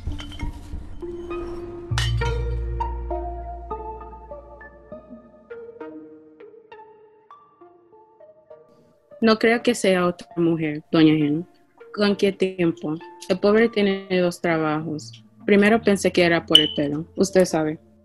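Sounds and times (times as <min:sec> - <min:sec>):
glass bottles clinking as they are taken out in a botánica shop in New York: 0:01.9 - 0:02.5, 0:16.5 - 0:17.0
speech: 0:09.2 - 0:17.9.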